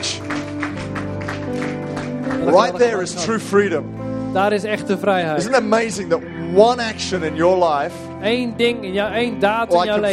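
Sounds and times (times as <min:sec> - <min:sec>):
audience clapping: 0:00.0 - 0:03.3
speech: 0:02.5 - 0:10.1.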